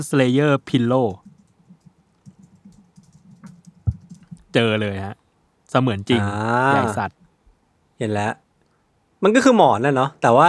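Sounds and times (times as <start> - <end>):
speech: 0.0 - 1.3, 4.5 - 7.2, 8.0 - 8.4, 9.2 - 10.4
rapid keyboard typing to search for a Berserk Dragon Slayer body pillow: 0.2 - 4.6.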